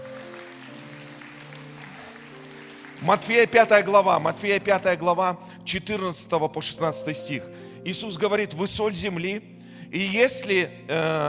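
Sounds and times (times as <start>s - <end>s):
crowd applause: 0.0s - 4.2s
speech: 3.0s - 11.2s.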